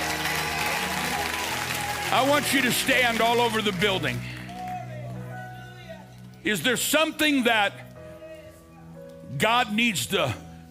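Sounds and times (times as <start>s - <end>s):
audience clapping: 0.0s - 5.4s
speech: 2.1s - 4.3s, 6.4s - 7.8s, 9.3s - 10.7s.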